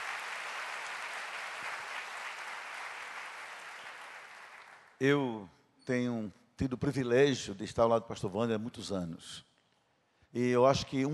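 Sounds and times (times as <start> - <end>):
audience applause: 0.0 - 4.9
speech: 5.0 - 9.5, 10.3 - 11.1.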